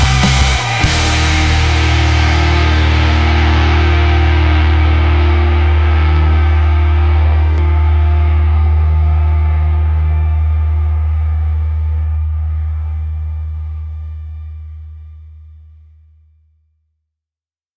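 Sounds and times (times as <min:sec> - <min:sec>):
powerful rock anthems: 0:00.0 - 0:13.2.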